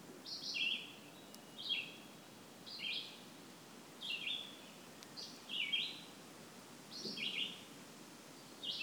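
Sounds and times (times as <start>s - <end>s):
bird chorus at a brook in a mountain wilderness: 0.2s - 3.3s, 4.0s - 6.2s, 6.9s - 7.7s, 8.4s - 8.8s.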